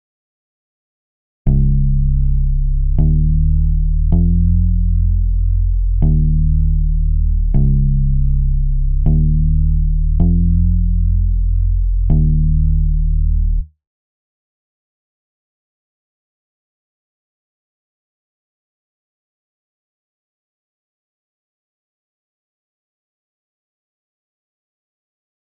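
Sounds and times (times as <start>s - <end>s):
bass: 1.5s - 13.8s.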